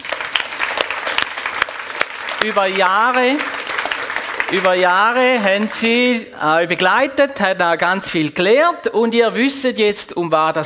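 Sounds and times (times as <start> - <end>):
applause: 0.0 - 6.2
speech: 2.4 - 3.6, 4.5 - 10.6.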